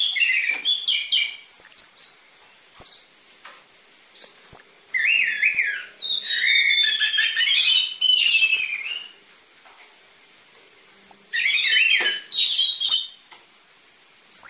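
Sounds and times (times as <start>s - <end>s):
orange-headed thrush singing varied whistles and twittering: 0.0s - 9.2s, 11.0s - 13.2s.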